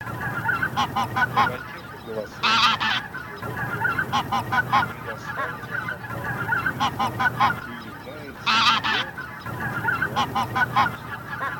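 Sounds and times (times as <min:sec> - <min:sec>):
greylag goose calling: 0:00.0 - 0:11.5.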